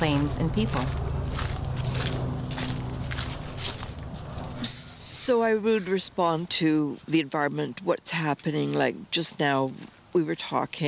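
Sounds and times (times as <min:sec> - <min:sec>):
speech: 0:00.0 - 0:01.1, 0:04.6 - 0:10.8
footsteps of someone walking: 0:00.0 - 0:04.9.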